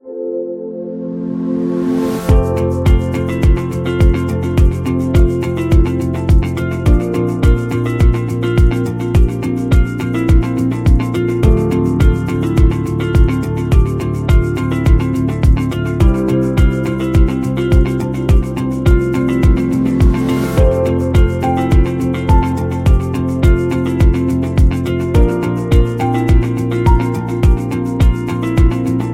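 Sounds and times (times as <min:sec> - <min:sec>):
inspiring corporate music: 0:00.0 - 0:29.1.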